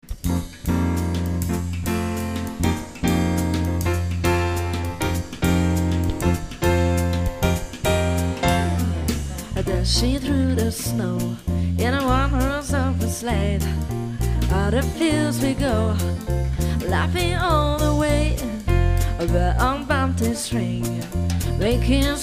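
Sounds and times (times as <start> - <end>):
Christmas song: 0.3 - 22.2.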